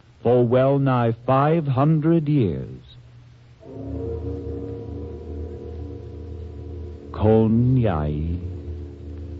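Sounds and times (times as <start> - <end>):
speech: 0.2 - 2.8, 7.2 - 8.5
great temple bell tolling: 3.6 - 9.3.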